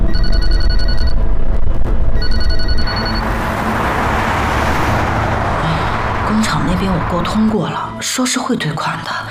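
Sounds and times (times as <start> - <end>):
telephone ringing: 0.0 - 1.2, 2.2 - 3.2
steady rumbling noise: 0.7 - 9.2.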